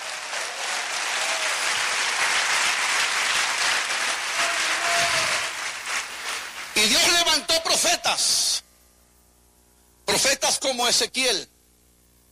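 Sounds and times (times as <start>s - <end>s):
audience applauding: 0.0s - 7.2s
speech: 7.6s - 8.5s, 10.2s - 11.5s.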